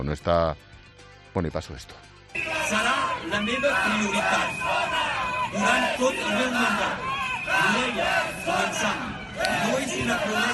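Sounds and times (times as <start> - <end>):
speech: 0.0 - 0.7, 1.3 - 10.5
crowd shouting and jeering at a political rally: 2.4 - 10.5.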